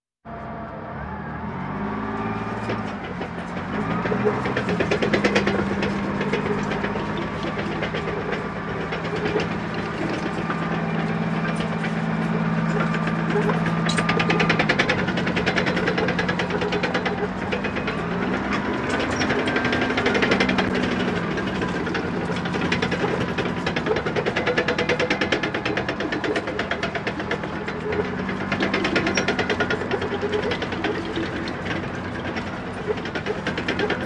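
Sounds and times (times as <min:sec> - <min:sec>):
military vehicles: 0:00.2 - 0:34.0.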